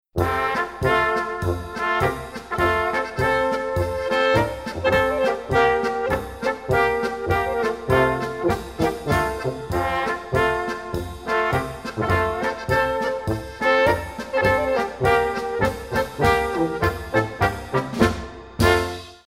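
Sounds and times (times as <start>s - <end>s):
polka music: 0.0s - 19.2s.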